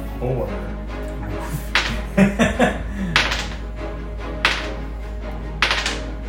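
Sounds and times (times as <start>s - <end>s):
speech: 0.2s - 0.8s
laughter: 1.1s - 3.6s
dice rolled during a tabletop role-playing game: 1.7s - 2.2s, 3.1s - 3.7s, 4.4s - 4.8s, 5.6s - 6.1s.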